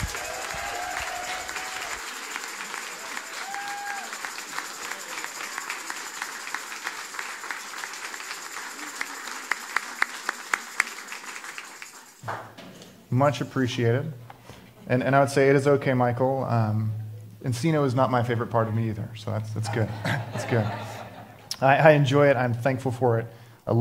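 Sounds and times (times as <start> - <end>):
laughter: 0.0 - 6.9, 19.6 - 21.6
audience applause welcoming a speaker to the stage: 0.0 - 12.2
speech: 13.1 - 14.2, 14.9 - 20.9, 21.6 - 23.8.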